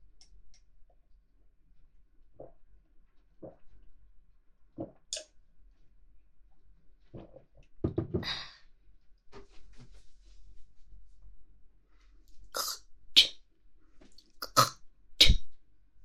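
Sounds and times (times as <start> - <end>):
person with an irritated throat hawking and spitting phlegm: 12.5 - 13.4, 14.4 - 15.4.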